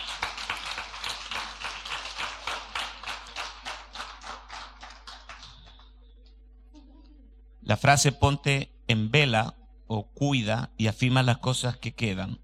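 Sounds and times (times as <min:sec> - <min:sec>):
audience clapping: 0:00.0 - 0:06.0
speech: 0:07.7 - 0:12.4.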